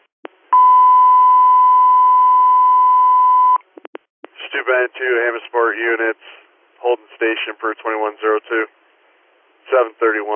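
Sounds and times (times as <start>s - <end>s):
dispatch radio alert tone beep: 0.6s - 3.6s
speech: 4.6s - 8.8s, 9.7s - 10.3s.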